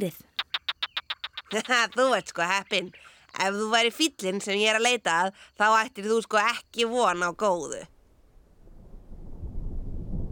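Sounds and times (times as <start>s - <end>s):
speech: 0.0s - 0.3s, 1.5s - 7.9s
thunder rumbling: 8.5s - 10.2s.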